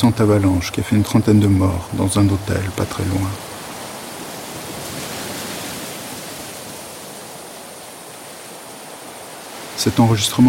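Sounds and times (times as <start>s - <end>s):
speech: 0.0s - 3.5s, 9.8s - 10.4s
insects in early summer: 0.0s - 10.4s
wind through scrubland: 0.0s - 10.4s.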